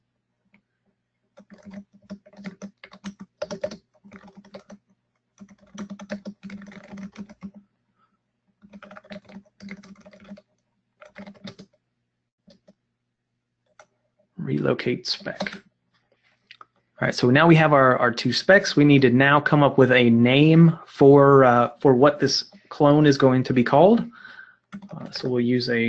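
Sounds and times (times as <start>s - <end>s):
typing on a computer keyboard: 1.4s - 7.6s, 8.6s - 11.8s, 12.4s - 12.8s, 15.2s - 15.6s, 24.0s - 25.3s
speech: 14.5s - 15.7s, 17.0s - 24.2s, 25.2s - 25.8s.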